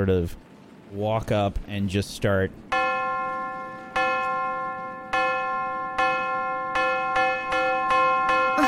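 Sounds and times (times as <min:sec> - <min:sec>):
speech: 0:00.0 - 0:02.7
bell clanging: 0:02.7 - 0:08.6.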